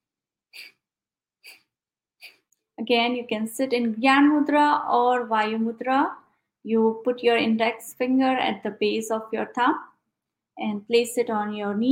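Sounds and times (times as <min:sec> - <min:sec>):
forceful exhalations through the nostrils in a yoga breathing exercise: 0:00.6 - 0:00.8, 0:01.4 - 0:02.5
speech: 0:02.8 - 0:09.9, 0:10.6 - 0:11.9.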